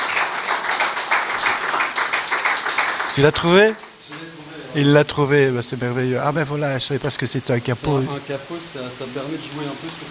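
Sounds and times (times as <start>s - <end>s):
audience applause: 0.0s - 4.8s
speech: 3.2s - 3.9s, 4.7s - 10.0s.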